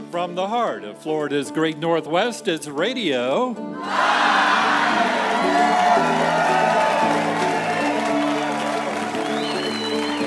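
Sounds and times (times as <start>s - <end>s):
speech: 0.2s - 4.2s
crowd cheering and applauding at a live radio show at the Museum of Commerce, Pensacola: 3.8s - 10.2s.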